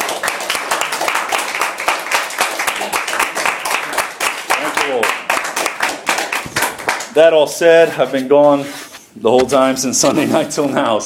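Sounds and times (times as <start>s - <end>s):
audience hand clapping: 0.0s - 7.4s
speech: 7.2s - 11.0s.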